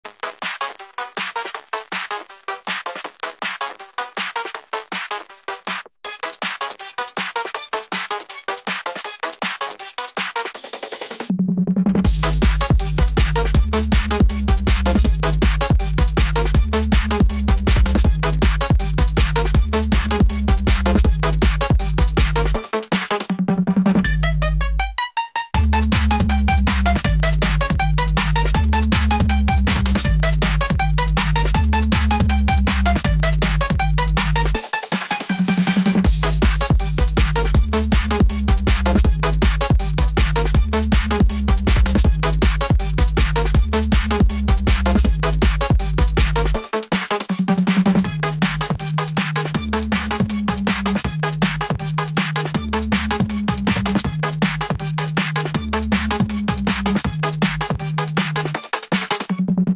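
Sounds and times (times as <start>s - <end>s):
aggressive phonk music: 0.2s - 59.7s.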